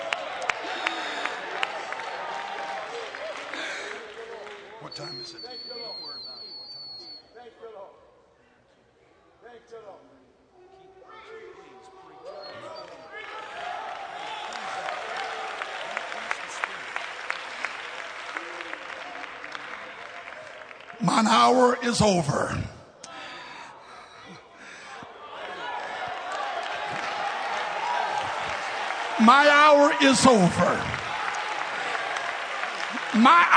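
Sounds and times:
audience clapping in worship: 0.0s - 5.3s, 13.3s - 22.4s, 25.3s - 33.5s
speech: 5.0s - 5.8s, 21.1s - 22.7s, 29.2s - 31.0s, 33.2s - 33.5s.

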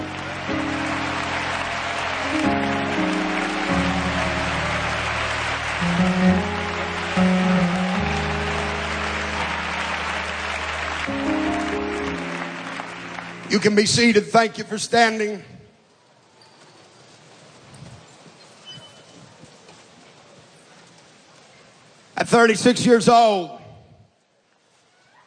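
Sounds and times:
audience clapping hands: 0.0s - 14.3s
speech: 13.6s - 15.5s, 22.2s - 23.6s.

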